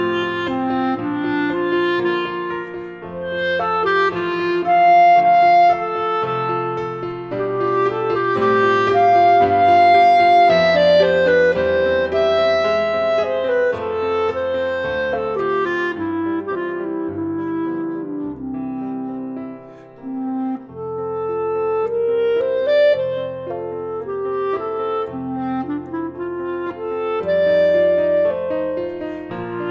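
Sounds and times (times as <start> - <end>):
clarinet: 0.0 - 29.6.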